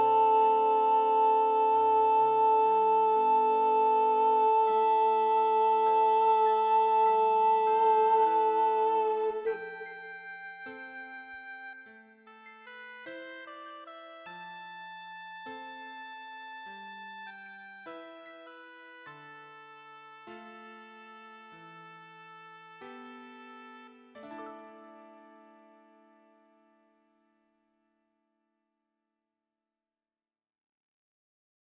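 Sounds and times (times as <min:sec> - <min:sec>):
SSAA choir singing with Soprano 1 predominant: 0:00.0 - 0:11.1.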